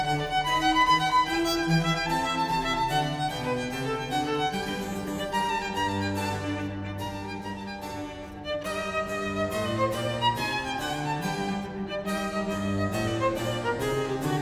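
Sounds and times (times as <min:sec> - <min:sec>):
sonata in G major: 0:00.0 - 0:14.4.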